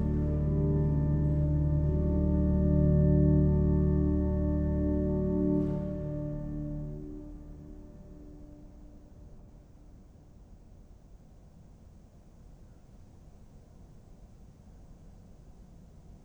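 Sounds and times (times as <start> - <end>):
organ improvisation: 0.0 - 7.7.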